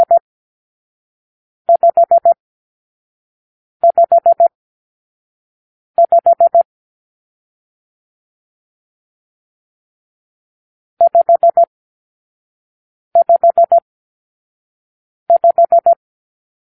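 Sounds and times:
morse code for numeral five: 1.7 - 2.4, 3.8 - 4.5, 6.0 - 6.7, 11.0 - 11.7, 13.2 - 13.8, 15.3 - 16.0.

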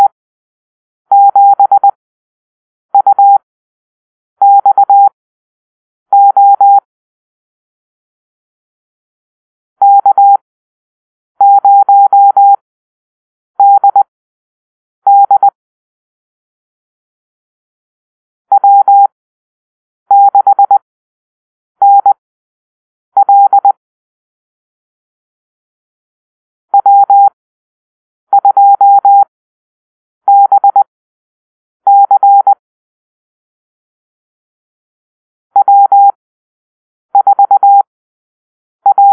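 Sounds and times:
morse code call-sign drill: 1.1 - 2.0, 4.4 - 5.1, 6.1 - 6.9, 9.8 - 10.4, 11.4 - 12.6, 13.6 - 14.1, 15.1 - 15.6, 18.5 - 19.1, 20.1 - 20.8, 21.8 - 22.2, 23.2 - 23.8, 26.8 - 27.4, 28.3 - 29.3, 30.3 - 30.9, 31.9 - 32.6, 35.6 - 36.2, 37.2 - 37.9, 38.8 - 39.1.

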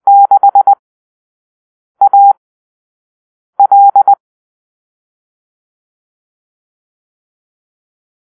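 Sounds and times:
morse code call-sign beeps: 0.1 - 0.8, 2.0 - 2.4, 3.6 - 4.2.

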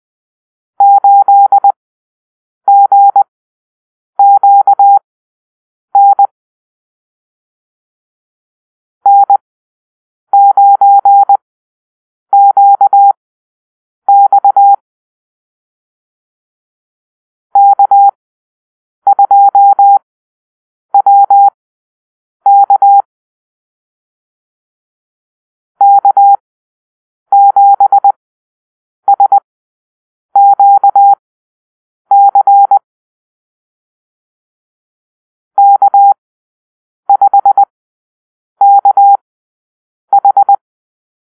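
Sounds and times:
morse code call-sign drill: 0.8 - 1.8, 2.7 - 3.3, 4.2 - 5.0, 6.0 - 6.3, 9.1 - 9.4, 10.4 - 11.4, 12.4 - 13.2, 14.1 - 14.8, 17.6 - 18.2, 19.1 - 20.0, 21.0 - 21.6, 22.5 - 23.1, 25.8 - 26.4, 27.3 - 28.2, 29.1 - 29.4, 30.4 - 31.2, 32.1 - 32.8, 35.6 - 36.2, 37.1 - 37.7, 38.6 - 39.2, 40.1 - 40.6.

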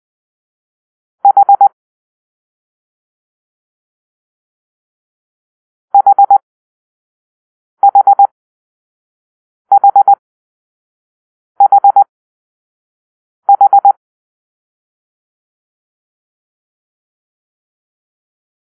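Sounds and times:
morse code for the letter H: 6.0 - 6.4, 7.8 - 8.3, 9.7 - 10.2, 11.6 - 12.1, 13.5 - 14.0.

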